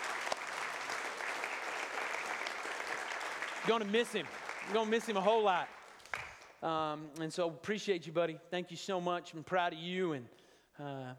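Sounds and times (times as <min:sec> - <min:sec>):
round of applause: 0:00.0 - 0:06.6
speech: 0:03.6 - 0:05.8, 0:06.6 - 0:11.1.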